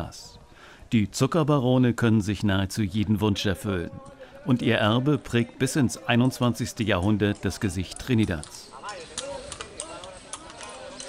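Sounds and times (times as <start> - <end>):
speech: 0.0 - 8.7
donkey hooves clip-clopping on original cobblestones in Trinidad, Cuba: 4.8 - 11.0.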